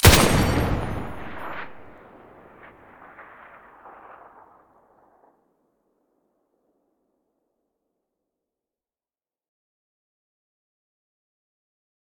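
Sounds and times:
M249 machine gun muzzle firing: 0.0 - 4.4.

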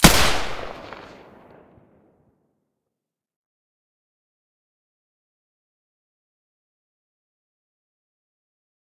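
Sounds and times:
G36 firing with silencer in stereo: 0.0 - 1.8.

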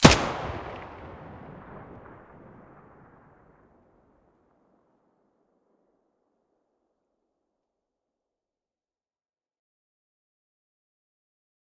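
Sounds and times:
MP5 submachine gun muzzle blast: 0.0 - 2.6.

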